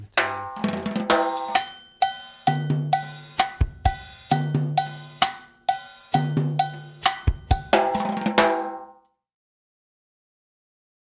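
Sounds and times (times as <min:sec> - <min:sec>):
drum kit: 0:00.1 - 0:09.0
cha-cha bell: 0:00.2 - 0:08.1.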